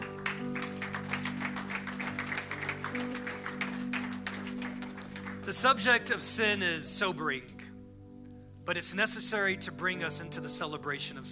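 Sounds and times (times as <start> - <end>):
audience clapping hands: 0.0 - 5.6
speech: 5.5 - 7.5, 8.7 - 11.3.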